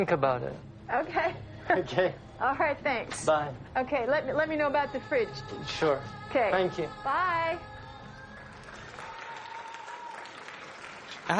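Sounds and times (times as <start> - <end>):
speech: 0.0 - 7.7
people clapping for nurses and first responders: 8.3 - 11.3.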